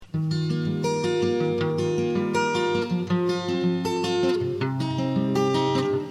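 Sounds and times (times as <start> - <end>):
guitar sample: 0.0 - 6.0.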